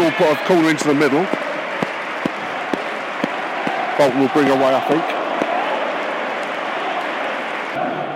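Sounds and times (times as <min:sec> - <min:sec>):
stadium crowd applause: 0:00.0 - 0:08.1
speech: 0:00.1 - 0:01.4, 0:04.0 - 0:05.1.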